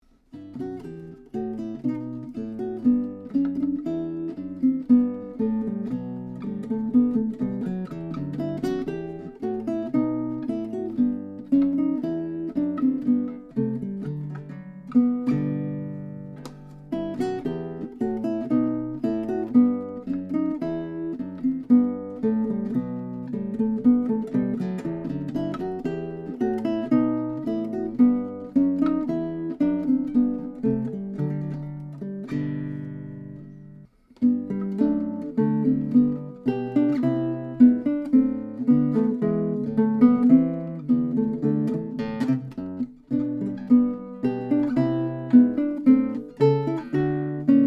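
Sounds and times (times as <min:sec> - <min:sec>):
guitars playing a bourree: 0:00.0 - 0:47.6.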